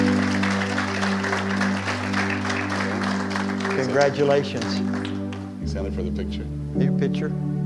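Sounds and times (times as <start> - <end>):
audience hand clapping: 0.0 - 5.9
speech: 3.8 - 5.0, 5.7 - 7.5.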